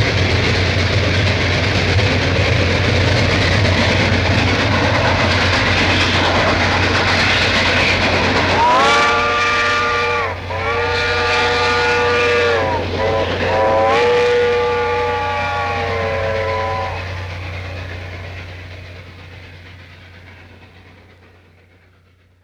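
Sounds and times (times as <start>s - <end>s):
steam locomotive departing: 0.0s - 22.4s.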